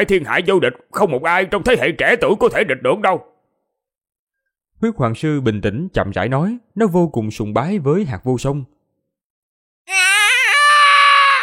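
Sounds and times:
speech: 0.0s - 3.3s, 4.8s - 8.8s, 9.8s - 10.1s
shrill wavering scream for a small yellow ant: 9.9s - 11.4s.

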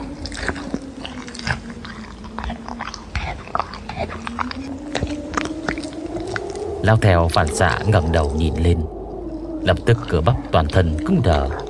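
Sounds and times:
animal chewing with wet smacking: 0.0s - 11.6s
low continuous hum: 0.0s - 11.6s
speech: 6.9s - 8.9s, 9.7s - 11.6s.

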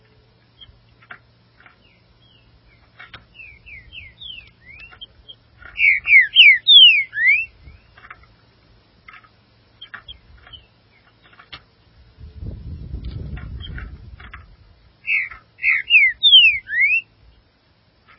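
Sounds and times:
green-winged saltator whistling: 3.3s - 7.9s, 15.0s - 17.1s.

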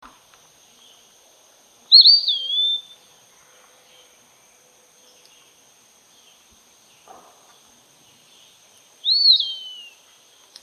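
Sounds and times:
Eastern wood pewee song: 1.9s - 3.0s, 9.0s - 10.0s.

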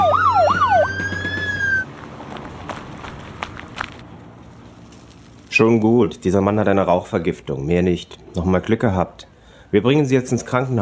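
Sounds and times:
sirens of an arriving fire engine and ambulance: 0.0s - 1.9s
scattered footsteps: 0.5s - 5.6s
speech: 5.6s - 10.8s.

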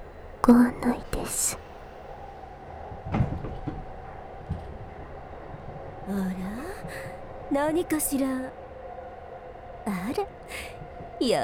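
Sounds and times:
speech: 0.5s - 1.6s, 7.6s - 8.6s, 9.9s - 11.4s
sliding door opening: 3.0s - 5.6s.

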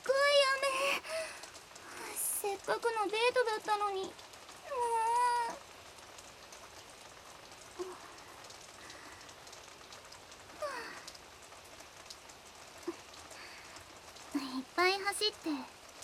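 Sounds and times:
rain falling: 0.0s - 16.0s
speech: 2.7s - 4.2s, 15.2s - 15.8s.

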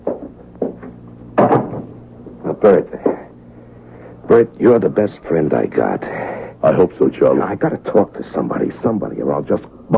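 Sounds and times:
door being closed: 1.4s - 2.0s
speech: 2.6s - 3.1s, 4.4s - 9.9s.

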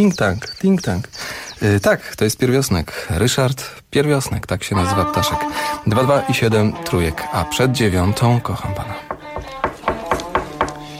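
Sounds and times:
speech: 0.0s - 9.1s
knocking on a door: 9.1s - 10.9s.

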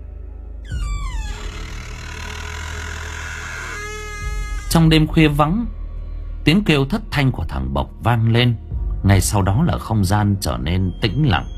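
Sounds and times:
house door slowly pulled wide open at night: 0.6s - 5.2s
steady dull hum: 0.7s - 6.4s
speech: 4.7s - 5.8s, 6.4s - 11.5s.

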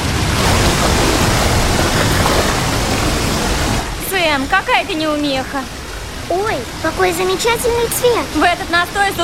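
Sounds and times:
water pouring from a wooden chute into a bath: 0.1s - 4.2s
speech: 4.4s - 9.2s.

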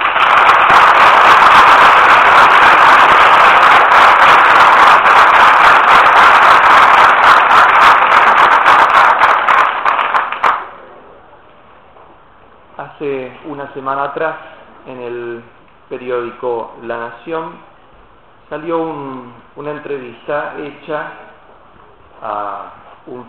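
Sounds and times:
loud applause welcoming a speaker: 0.0s - 10.8s
speech: 13.0s - 17.7s, 18.5s - 21.2s, 22.2s - 23.2s.

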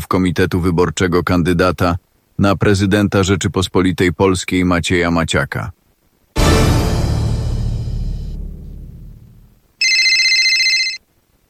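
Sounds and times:
speech: 0.1s - 5.8s
loud bright crash: 6.4s - 9.6s
high electronic telephone ring before a call: 9.8s - 11.0s.

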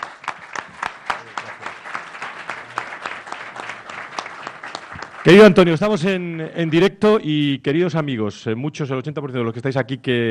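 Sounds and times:
business-forum audience applause at a live radio event: 0.0s - 6.8s
speech: 5.2s - 10.2s.

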